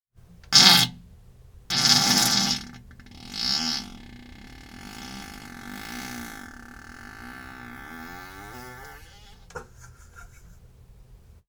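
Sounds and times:
fart: 0:00.6 - 0:00.9, 0:01.7 - 0:09.5.

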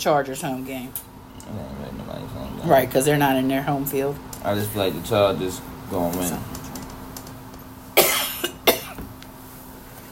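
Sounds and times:
speech: 0:00.0 - 0:06.6
person coughing and choking: 0:08.0 - 0:09.0.

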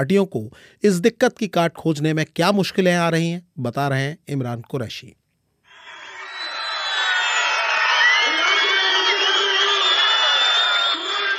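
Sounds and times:
speech: 0:00.0 - 0:05.2
excited crowd cheering: 0:05.7 - 0:11.3.

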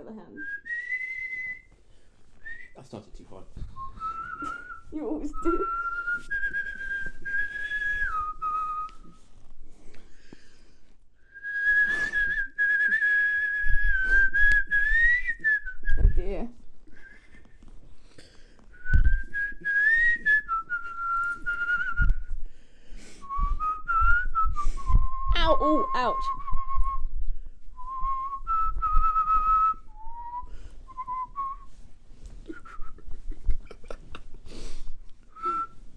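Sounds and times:
speech: 0:00.0 - 0:00.7, 0:02.8 - 0:06.5
person whistling a tune: 0:00.4 - 0:01.8, 0:03.7 - 0:09.2, 0:11.3 - 0:16.2, 0:18.8 - 0:22.3, 0:23.2 - 0:27.2, 0:27.8 - 0:31.8, 0:35.3 - 0:35.8.

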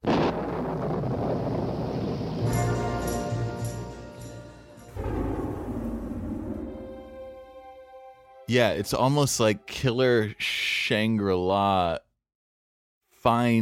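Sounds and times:
thunder at the beginning of a song: 0:00.0 - 0:03.6, 0:04.9 - 0:07.5
speech: 0:08.5 - 0:12.0, 0:13.2 - 0:13.6.

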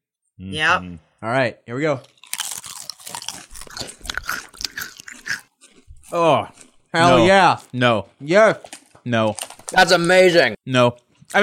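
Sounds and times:
speech: 0:00.4 - 0:02.2, 0:06.1 - 0:11.4
crunching and chewing on a spicy snack from a packet: 0:02.0 - 0:07.8, 0:08.6 - 0:10.2.

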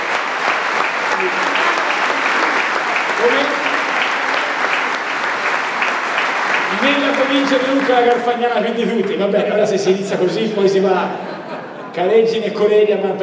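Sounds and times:
audience applause: 0:00.0 - 0:10.3
laughter: 0:01.0 - 0:05.7, 0:10.1 - 0:12.9
speech: 0:01.2 - 0:01.5, 0:03.2 - 0:03.6, 0:06.8 - 0:11.3, 0:12.0 - 0:13.2.

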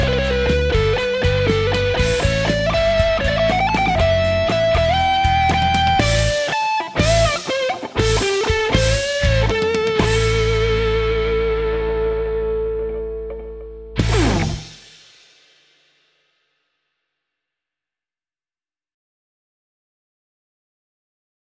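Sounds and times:
rock band jamming: 0:00.0 - 0:12.6, 0:14.0 - 0:15.2.

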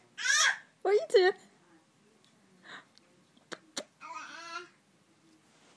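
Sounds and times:
baby noises: 0:00.2 - 0:00.7, 0:04.0 - 0:04.8.

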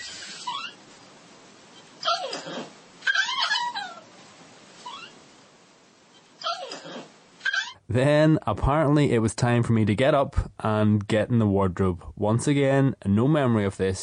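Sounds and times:
dog making noises while dreaming: 0:02.0 - 0:04.1, 0:06.4 - 0:07.8
speech: 0:07.9 - 0:14.0.

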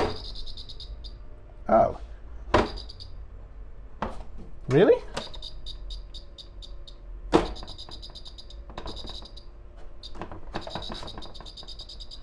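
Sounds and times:
floor heater squeaking: 0:00.0 - 0:01.2, 0:02.6 - 0:03.2, 0:05.1 - 0:12.2
speech: 0:01.7 - 0:02.1, 0:04.7 - 0:05.2.

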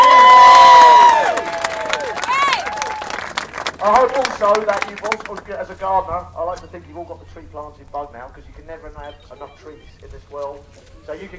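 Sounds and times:
crowd applause: 0:00.0 - 0:05.5
speech: 0:04.0 - 0:11.3.

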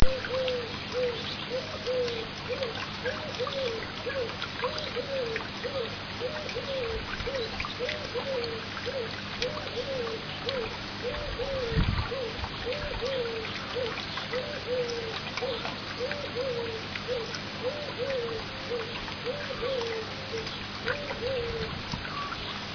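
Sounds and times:
birds: 0:00.0 - 0:22.7
garden fountain water: 0:00.0 - 0:22.7.

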